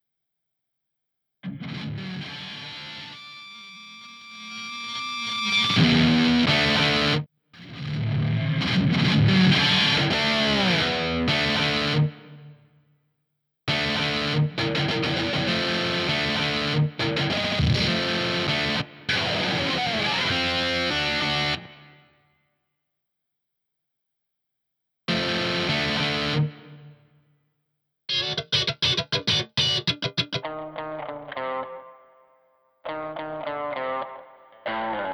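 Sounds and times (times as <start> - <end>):
guitar solo: 1.5 - 12.2, 13.7 - 22.0, 25.1 - 26.9, 28.1 - 35.1.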